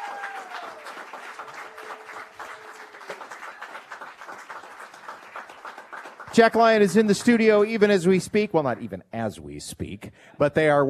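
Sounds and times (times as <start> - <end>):
crowd applauding: 0.0 - 7.9
speech: 6.3 - 10.8.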